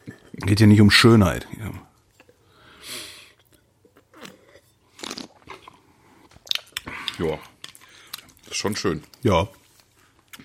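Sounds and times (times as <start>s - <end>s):
speech: 0.5s - 1.8s, 7.2s - 7.5s, 8.6s - 9.6s
lip smacking while eating: 3.4s - 8.4s
loud wet chewing while eating: 3.4s - 9.2s.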